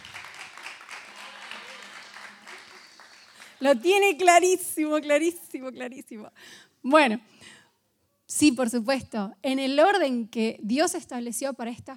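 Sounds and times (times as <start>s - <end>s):
audience applause: 0.0s - 3.9s
speech: 3.6s - 7.6s, 8.3s - 11.9s.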